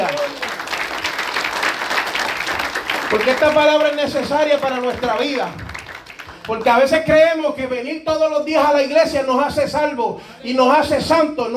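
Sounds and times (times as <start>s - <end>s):
audience clapping hands: 0.0s - 7.2s
speech: 3.1s - 5.6s, 6.4s - 11.5s.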